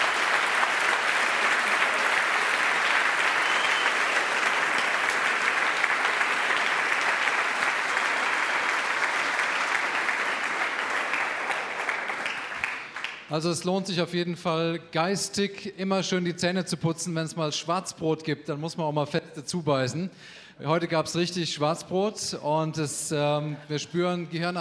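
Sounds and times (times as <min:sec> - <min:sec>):
large audience applause: 0:00.0 - 0:13.3
speech: 0:13.3 - 0:24.5.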